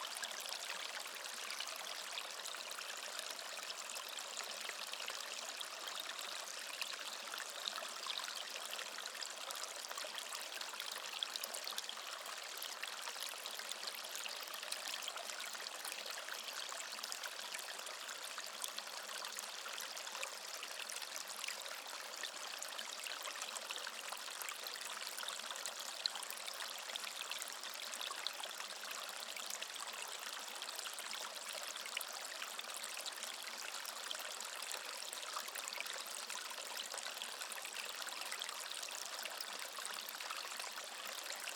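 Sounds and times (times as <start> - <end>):
calm gurgling water stream: 0.0 - 41.5.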